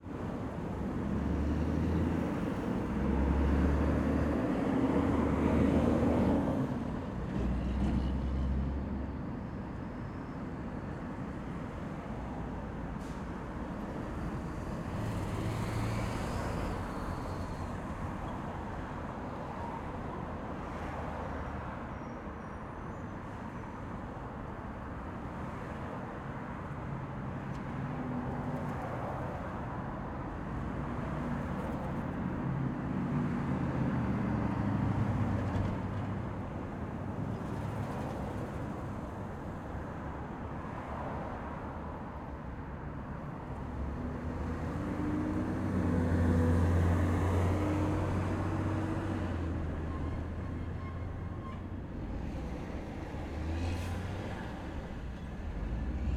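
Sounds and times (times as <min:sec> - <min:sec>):
many trucks passing: 0:00.0 - 0:09.1, 0:12.7 - 0:19.2, 0:27.7 - 0:42.1, 0:43.3 - 0:56.1
city street traffic: 0:00.0 - 0:56.1.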